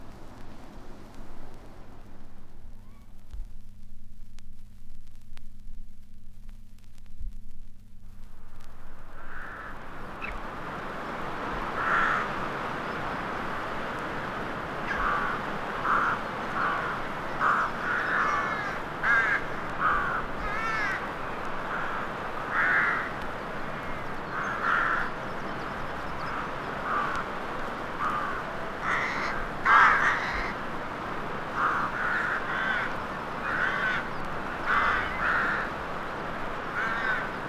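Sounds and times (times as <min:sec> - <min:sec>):
vinyl crackle: 0:00.0 - 0:10.7
crows cawing in a graveyard: 0:09.0 - 0:37.4.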